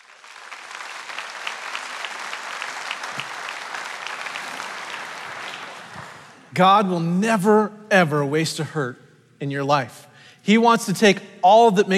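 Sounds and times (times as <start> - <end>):
audience applause welcoming a speaker: 0.0 - 6.5
speech: 6.5 - 11.9.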